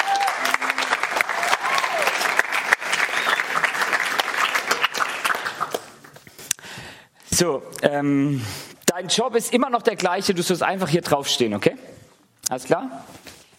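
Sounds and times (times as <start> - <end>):
faint cheers: 0.0 - 3.8
crowd applause: 0.0 - 6.2
speech: 7.4 - 11.8, 12.5 - 13.2.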